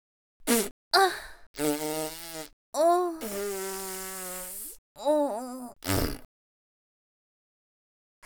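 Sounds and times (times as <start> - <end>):
fart: 0.4 - 0.7, 1.6 - 2.6, 3.2 - 4.8, 5.7 - 6.3.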